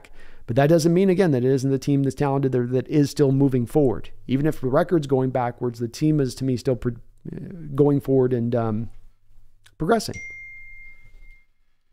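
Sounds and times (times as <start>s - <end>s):
speech: 0.5s - 9.0s, 9.8s - 10.3s
phone notification beep: 10.2s - 11.5s.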